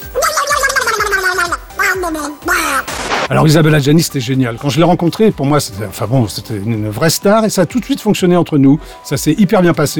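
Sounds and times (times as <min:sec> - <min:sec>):
voice imitating a duck quacking: 0:00.0 - 0:03.0
speech: 0:02.0 - 0:09.9.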